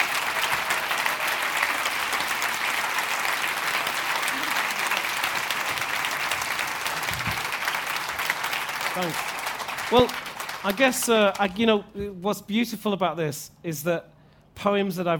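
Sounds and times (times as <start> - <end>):
audience applause: 0.0 - 11.6
speech: 9.0 - 9.3, 9.9 - 15.1.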